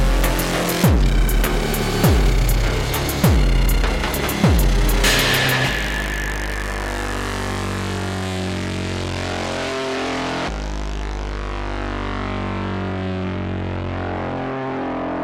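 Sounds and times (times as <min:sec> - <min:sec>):
industrial techno music: 0:00.0 - 0:14.2.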